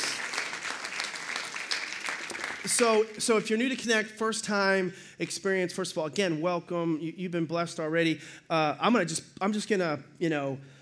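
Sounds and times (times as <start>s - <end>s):
church congregation clapping: 0.0s - 3.8s
speech: 2.6s - 10.7s.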